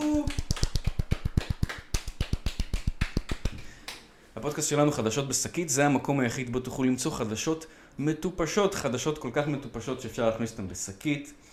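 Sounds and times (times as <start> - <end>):
hand clapping: 0.0 - 4.1
speech: 4.4 - 11.5.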